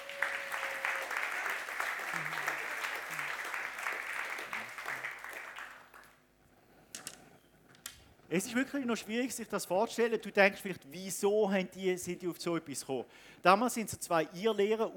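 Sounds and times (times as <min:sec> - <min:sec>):
audience applause: 0:00.0 - 0:06.2
speech: 0:08.3 - 0:14.9.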